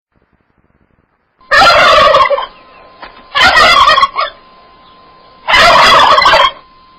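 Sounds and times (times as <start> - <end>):
turkey gobbling: 1.4 - 6.7.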